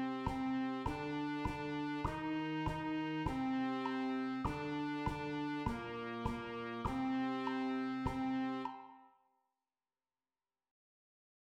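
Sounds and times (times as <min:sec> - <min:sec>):
school band playing a march: 0:00.0 - 0:09.0.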